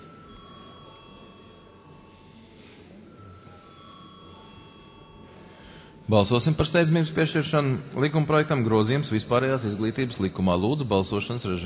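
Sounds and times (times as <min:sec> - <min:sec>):
parliament chamber electric bell ringing: 0:00.0 - 0:06.5
speech: 0:06.1 - 0:11.6.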